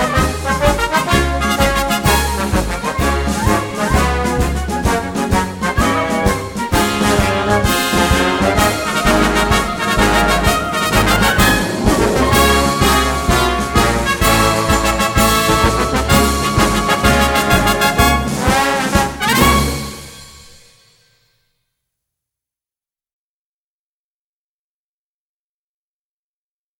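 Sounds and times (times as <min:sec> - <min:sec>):
trombones: 0:00.0 - 0:20.6.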